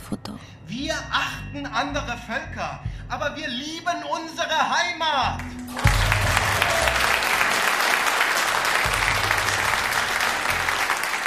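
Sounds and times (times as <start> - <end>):
speech: 0.1 - 6.4
audience applause: 5.6 - 11.2.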